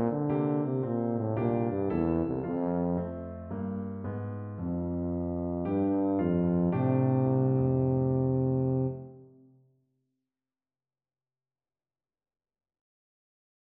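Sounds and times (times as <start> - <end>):
tuba: 0.0 - 9.4.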